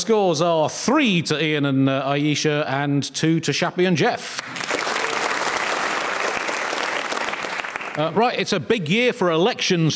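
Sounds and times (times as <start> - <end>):
speech: 0.0 - 4.7, 8.0 - 9.9
studio audience at a comedy panel quiz show applauding: 4.4 - 8.2.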